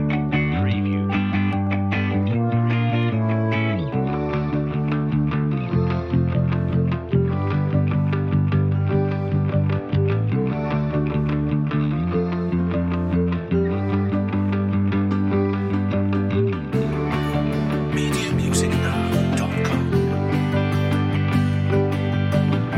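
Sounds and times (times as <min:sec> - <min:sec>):
bright inspiring music without drums: 0:00.0 - 0:22.7.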